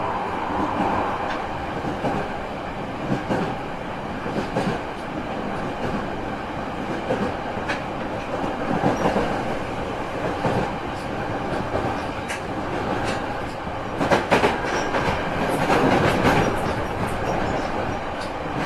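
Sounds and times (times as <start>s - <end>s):
Musashino 205 train: 0.0s - 18.6s.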